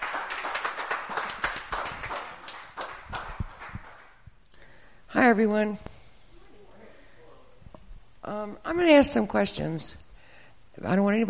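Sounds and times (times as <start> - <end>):
church congregation clapping: 0.0 - 4.3
speech: 5.2 - 5.9, 8.8 - 10.0, 10.8 - 11.2.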